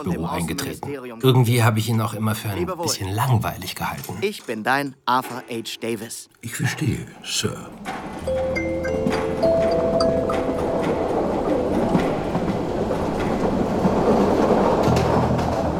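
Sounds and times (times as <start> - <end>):
speech: 0.0 - 8.5
train riding on rails: 7.8 - 15.7.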